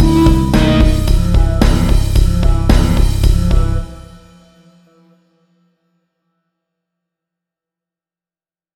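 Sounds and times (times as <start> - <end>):
heavy metal music: 0.0 - 4.6.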